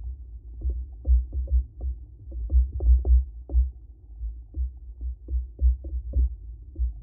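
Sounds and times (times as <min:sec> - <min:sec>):
hydrophone knock: 0:00.6 - 0:03.8, 0:04.5 - 0:07.0.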